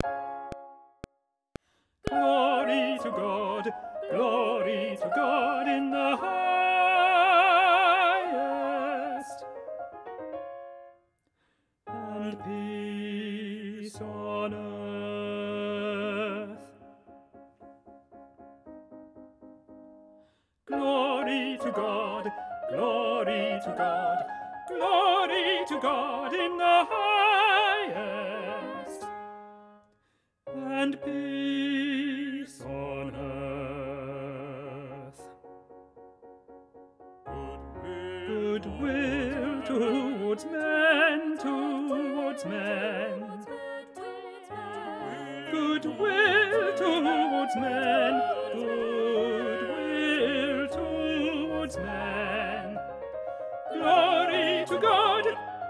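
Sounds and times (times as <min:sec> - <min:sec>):
tenor voice singing: 0:02.1 - 0:09.4, 0:11.9 - 0:16.7, 0:20.7 - 0:29.1, 0:30.5 - 0:35.2, 0:37.3 - 0:52.8, 0:53.7 - 0:55.5.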